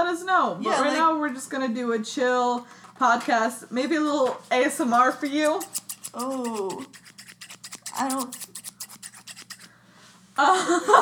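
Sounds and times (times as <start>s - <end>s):
speech: 0.3s - 7.0s, 8.0s - 8.4s, 10.4s - 11.0s
cutting paper with scissors: 4.1s - 9.7s.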